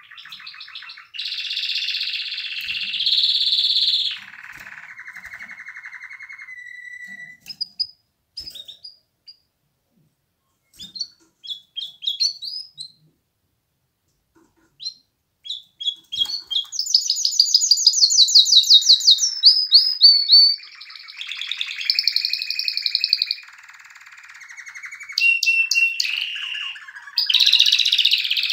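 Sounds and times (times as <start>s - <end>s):
canary singing trills and rolling tours: 0.0s - 9.4s, 10.7s - 13.1s, 14.7s - 28.5s.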